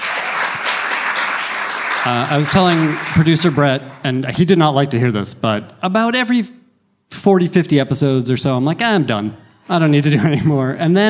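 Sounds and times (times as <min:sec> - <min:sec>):
audience applause: 0:00.0 - 0:04.2
speech: 0:02.0 - 0:11.0.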